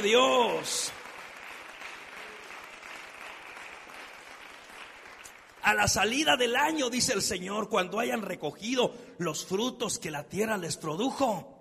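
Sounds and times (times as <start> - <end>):
speech: 0.0 - 1.0, 5.6 - 11.5
audience applauding: 0.0 - 6.0.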